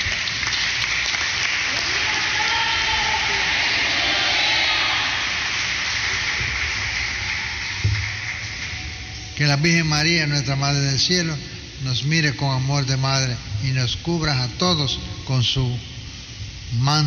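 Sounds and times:
crowd applauding: 0.0s - 9.4s
speech: 9.4s - 15.9s, 16.7s - 17.0s.

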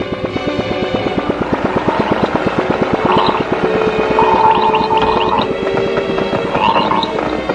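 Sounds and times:
strange bubbling transmission sound with rapid pulsing throb: 0.0s - 7.5s
wavering electronic-sounding tones: 1.6s - 5.7s, 6.3s - 7.3s
brief warbling chirps: 1.9s - 5.6s, 6.4s - 7.3s.

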